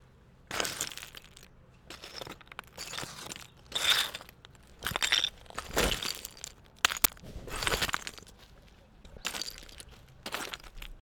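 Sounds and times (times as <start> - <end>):
rubble: 0.4 - 11.0.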